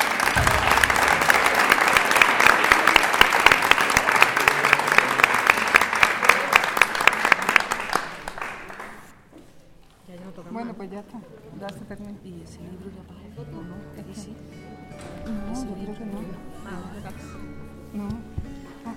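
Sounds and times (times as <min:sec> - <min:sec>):
audience clapping for musicians: 0:00.0 - 0:09.3
speech: 0:10.9 - 0:18.2.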